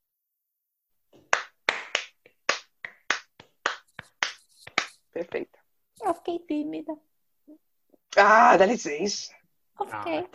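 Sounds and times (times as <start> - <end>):
hand clapping: 1.2 - 5.1
speech: 5.2 - 10.3.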